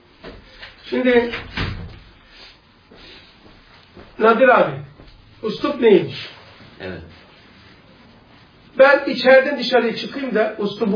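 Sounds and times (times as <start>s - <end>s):
speech: 0.9s - 1.6s, 4.2s - 7.1s, 8.8s - 10.9s
door pushed shut: 1.3s - 2.1s.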